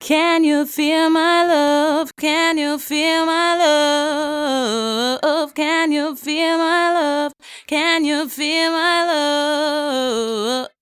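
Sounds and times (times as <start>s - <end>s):
vocal: 0.0s - 10.8s.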